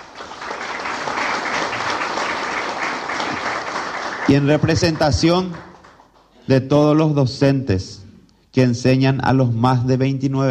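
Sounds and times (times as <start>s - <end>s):
audience applause: 0.0s - 6.3s
speech: 4.3s - 5.7s, 6.5s - 10.5s.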